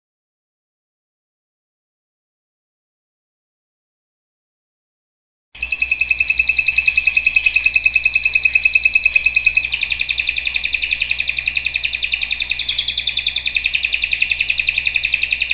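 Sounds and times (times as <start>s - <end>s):
canary singing rapid rolling trills: 5.6s - 15.5s.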